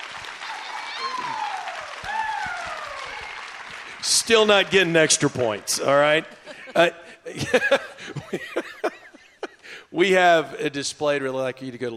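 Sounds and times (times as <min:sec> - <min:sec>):
audience applause: 0:00.0 - 0:05.2
speech: 0:04.0 - 0:08.6, 0:10.0 - 0:11.9
laughter: 0:06.0 - 0:09.7.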